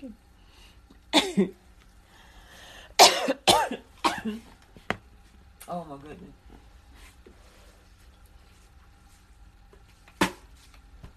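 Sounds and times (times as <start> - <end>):
speech: 0.0 - 0.3, 1.2 - 1.6, 4.2 - 4.5, 5.7 - 6.4
person coughing: 1.1 - 1.6, 3.0 - 4.4.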